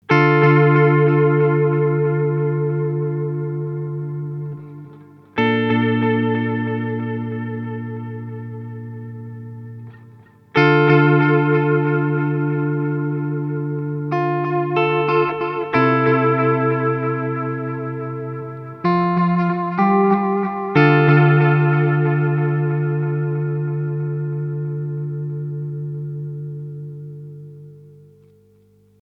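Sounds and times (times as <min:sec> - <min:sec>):
Earthquaker Devices Disaster Transport pedal: 0:00.0 - 0:29.0.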